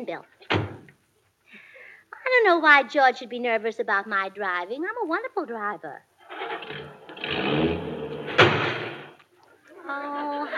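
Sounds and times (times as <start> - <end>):
speech: 0.0 - 0.7, 2.3 - 6.1, 9.9 - 10.5
car crash into parked car: 6.3 - 9.2.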